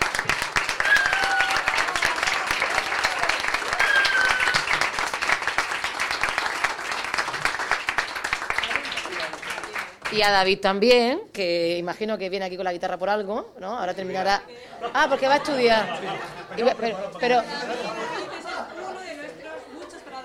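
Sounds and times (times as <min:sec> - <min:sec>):
audience applause: 0:00.0 - 0:10.2
speech: 0:10.2 - 0:17.8
laughter: 0:14.6 - 0:20.2.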